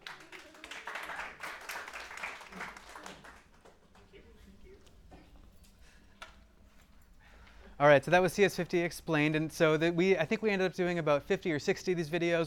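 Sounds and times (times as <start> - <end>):
audience applause: 0.0 - 4.2
speech: 7.8 - 12.4.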